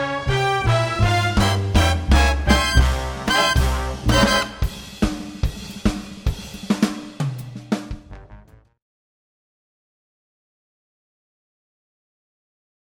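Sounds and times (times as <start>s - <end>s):
jazz music: 0.0s - 8.8s.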